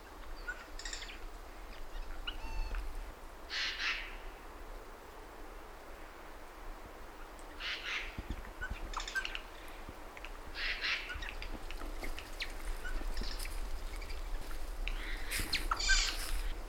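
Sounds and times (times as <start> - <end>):
Eurasian jay Garrulus glandarius giving hoarse rasping calls: 0.3 - 2.9, 3.5 - 4.3, 7.5 - 9.7, 10.5 - 14.2, 14.9 - 16.5.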